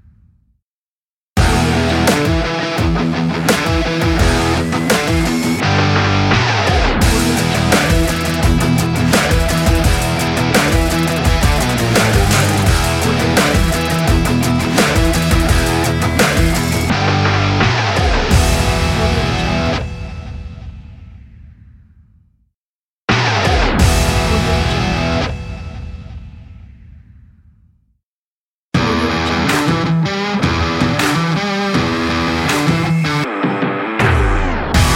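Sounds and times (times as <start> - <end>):
upbeat fun sports rock music: 1.4 - 20.0, 23.1 - 25.5, 28.8 - 34.9.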